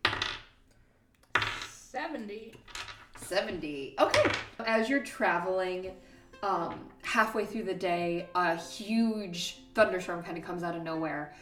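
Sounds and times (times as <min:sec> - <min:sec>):
dice rolling: 0:00.0 - 0:00.6, 0:01.3 - 0:01.8, 0:02.6 - 0:03.3, 0:04.0 - 0:04.6
speech: 0:01.9 - 0:11.4.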